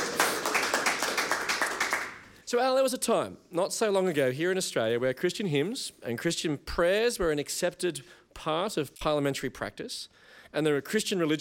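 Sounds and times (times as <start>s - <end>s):
round of applause: 0.0s - 2.3s
speech: 2.5s - 11.3s.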